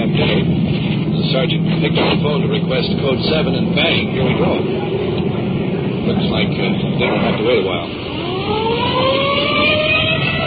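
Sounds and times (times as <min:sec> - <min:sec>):
police car engine drone: 0:00.0 - 0:10.4
speech: 0:01.4 - 0:05.4, 0:06.1 - 0:08.9
police car siren wailing while rolling code 3: 0:07.0 - 0:10.4.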